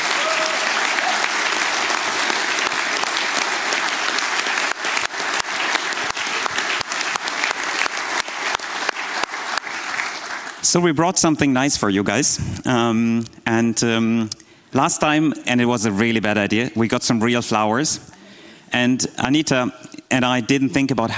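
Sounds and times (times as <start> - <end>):
audience applause: 0.0 - 10.6
speech: 10.7 - 18.1, 18.7 - 21.1.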